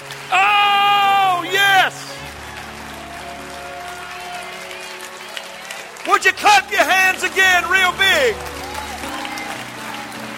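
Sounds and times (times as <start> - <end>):
audience clapping hands: 0.0 - 10.3
speech: 6.2 - 8.5.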